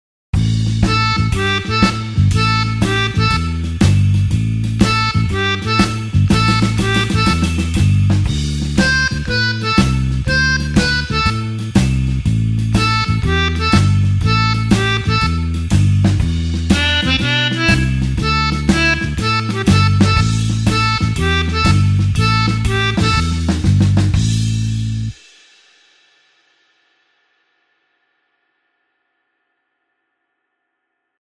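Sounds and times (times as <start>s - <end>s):
blues harp shuffle in A: 0.6s - 24.3s.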